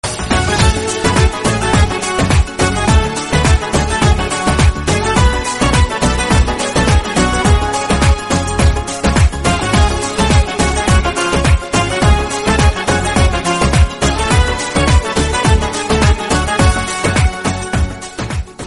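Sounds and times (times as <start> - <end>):
Turkish music: 0.0 - 18.6.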